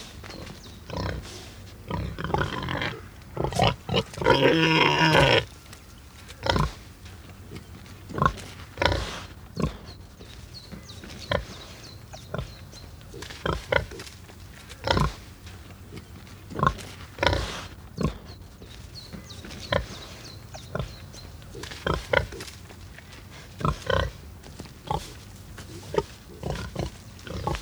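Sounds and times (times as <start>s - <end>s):
domestic pig grunting: 0.0s - 5.6s, 6.4s - 10.0s, 14.8s - 18.4s, 19.6s - 22.6s, 23.2s - 27.6s.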